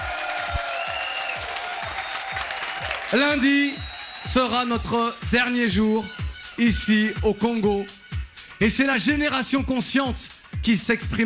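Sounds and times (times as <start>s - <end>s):
audience applause at a live event in Congo: 0.0s - 4.9s
speech: 3.1s - 8.0s, 8.6s - 11.2s.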